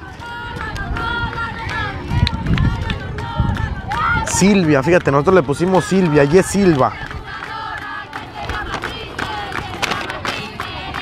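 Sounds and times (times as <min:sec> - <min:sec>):
spectators applauding at football match: 0:00.0 - 0:11.0
speech: 0:04.4 - 0:07.2.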